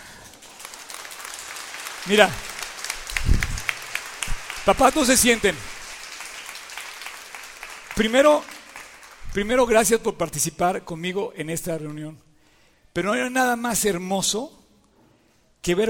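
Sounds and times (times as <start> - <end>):
audience applause: 0.0 - 9.4
speech: 2.0 - 2.5, 4.7 - 5.7, 8.0 - 8.5, 9.3 - 12.2, 13.0 - 14.6, 15.6 - 15.8.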